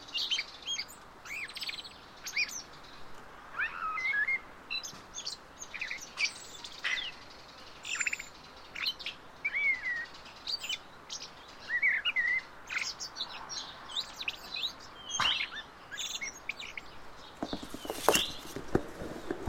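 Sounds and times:
common blackbird whistled song: 0:00.0 - 0:02.8, 0:03.6 - 0:19.4.

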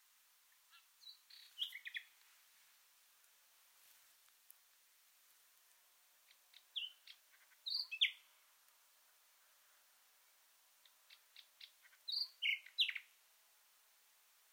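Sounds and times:
common nightingale singing: 0:00.5 - 0:02.2, 0:06.2 - 0:08.3, 0:10.2 - 0:13.2.

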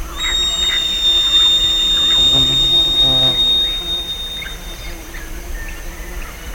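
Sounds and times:
bird calls: 0:00.2 - 0:05.0.

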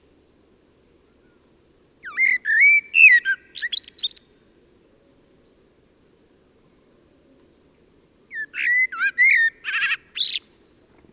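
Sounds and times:
common blackbird singing: 0:01.0 - 0:04.4, 0:08.3 - 0:10.6.

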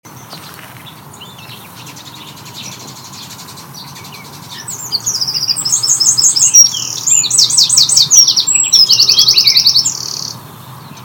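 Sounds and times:
background hum: 0:00.1 - 0:11.0
Eurasian wren song: 0:00.2 - 0:11.0.

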